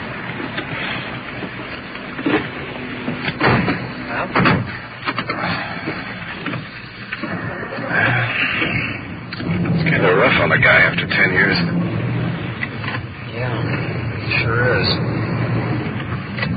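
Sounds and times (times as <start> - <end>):
rumble: 0.0 - 16.5
car door thumping shut: 3.3 - 5.4
faint indistinct voices: 7.2 - 16.5.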